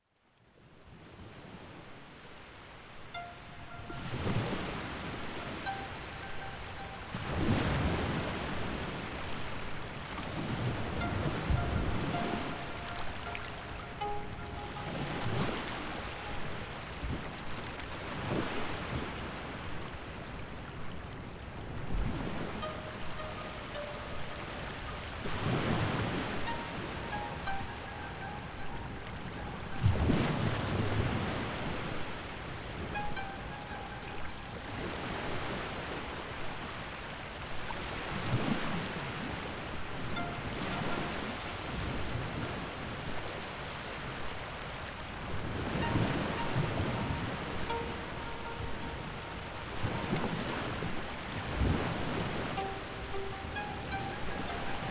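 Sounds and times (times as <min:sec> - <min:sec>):
ocean waves: 0:00.9 - 0:54.8.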